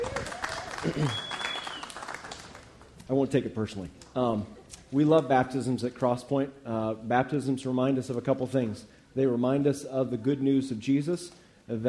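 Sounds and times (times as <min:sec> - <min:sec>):
voices and whoops: 0:00.0 - 0:01.9
crowd clapping: 0:00.0 - 0:03.0
speech: 0:00.8 - 0:01.3, 0:03.1 - 0:11.8.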